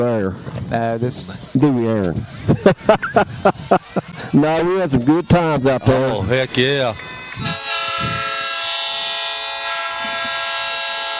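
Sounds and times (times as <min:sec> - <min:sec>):
speech: 0:00.0 - 0:08.2
laughter: 0:02.1 - 0:06.8, 0:09.9 - 0:10.5
old train horn: 0:07.0 - 0:11.1.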